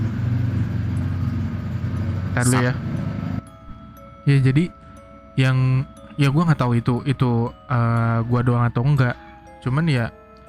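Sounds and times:
motorbike engine droning: 0:00.0 - 0:03.8
speech: 0:02.4 - 0:02.9, 0:04.2 - 0:04.8, 0:05.4 - 0:10.2.

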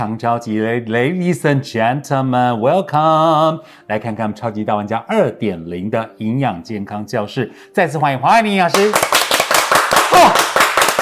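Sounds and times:
speech: 0:00.0 - 0:09.2
audience applause: 0:08.8 - 0:10.9.

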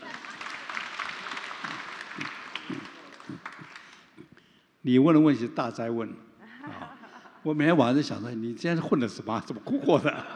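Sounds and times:
audience applause: 0:00.0 - 0:04.2
speech: 0:04.9 - 0:06.3, 0:07.4 - 0:10.3.

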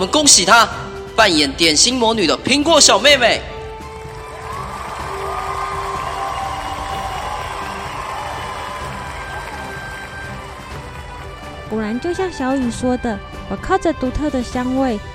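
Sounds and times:
speech: 0:00.0 - 0:03.6, 0:11.8 - 0:15.1
crowd applause: 0:03.8 - 0:11.8.

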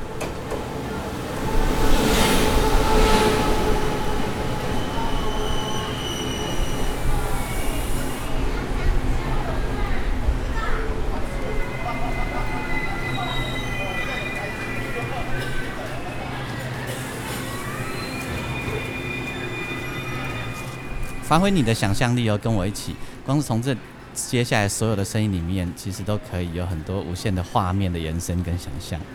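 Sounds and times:
train pulling into a station: 0:00.0 - 0:24.2
train wheel squeals: 0:01.5 - 0:08.3, 0:11.3 - 0:15.8, 0:17.0 - 0:21.8
speech: 0:21.3 - 0:29.1.

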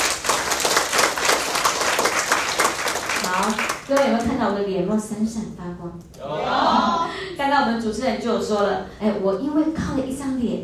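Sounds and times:
warm applause from audience: 0:00.0 - 0:04.0
speech: 0:03.4 - 0:10.6.

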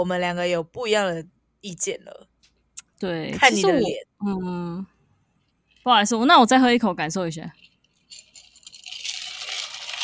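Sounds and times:
speech: 0:00.0 - 0:02.3, 0:03.0 - 0:04.9, 0:05.8 - 0:07.7
ice cubes rattling in a drink: 0:07.5 - 0:10.0.

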